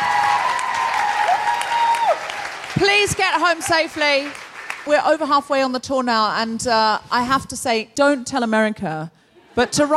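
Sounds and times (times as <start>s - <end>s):
crowd applauding: 0.0s - 4.9s
speech: 2.8s - 9.9s.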